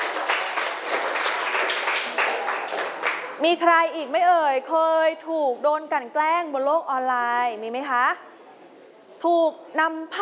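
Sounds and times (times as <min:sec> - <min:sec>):
classroom applause: 0:00.0 - 0:03.4
speech: 0:03.4 - 0:08.3, 0:09.2 - 0:10.2.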